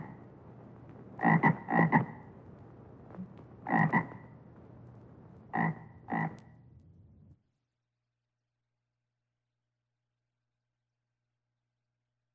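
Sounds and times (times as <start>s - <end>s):
frog croaking in low rattling bursts: 1.2s - 2.3s, 3.2s - 4.3s, 5.5s - 6.5s.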